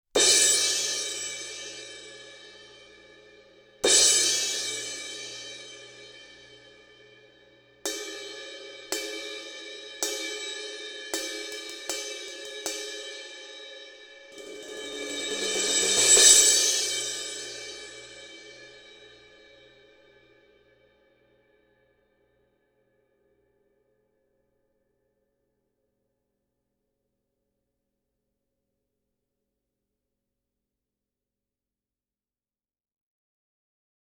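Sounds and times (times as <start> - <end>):
crash cymbal: 0.2 - 21.0.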